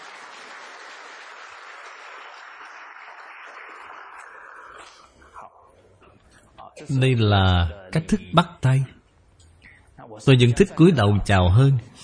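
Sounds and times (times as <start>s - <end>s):
audience applauding to thank a participant after a handshake demonstration: 0.0s - 5.2s
speech: 6.8s - 9.0s, 10.2s - 12.0s.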